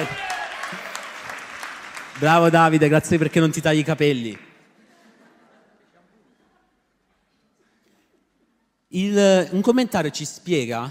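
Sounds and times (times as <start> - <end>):
audience applause: 0.0 - 4.6
speech: 2.2 - 4.4, 8.9 - 10.8
laughter: 4.7 - 7.3.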